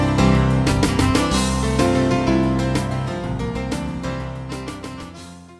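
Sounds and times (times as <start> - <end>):
saxophone lead: 0.2 - 4.5.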